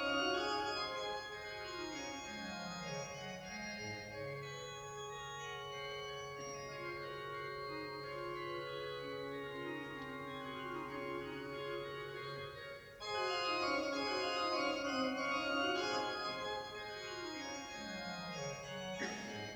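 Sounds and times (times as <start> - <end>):
organ sonata in D major: 0.0 - 19.5.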